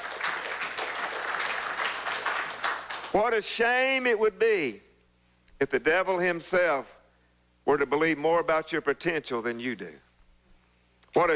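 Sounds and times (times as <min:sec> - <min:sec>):
crowd clapping: 0:00.0 - 0:03.2
speech: 0:03.1 - 0:04.9, 0:05.6 - 0:07.0, 0:07.6 - 0:10.1, 0:11.1 - 0:11.3.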